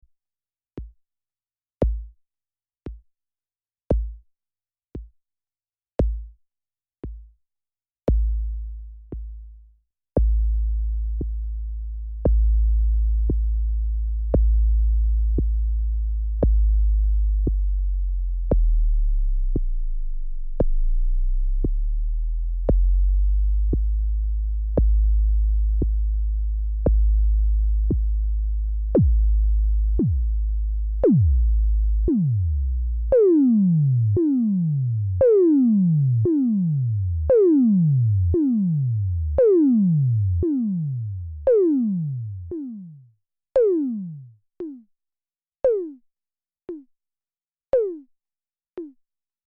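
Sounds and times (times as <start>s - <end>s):
bass drum: 1.8s - 2.2s, 3.9s - 4.2s, 6.0s - 6.4s, 8.1s - 9.5s, 10.2s - 43.0s, 43.6s - 44.8s
tom drum: 29.0s - 29.3s.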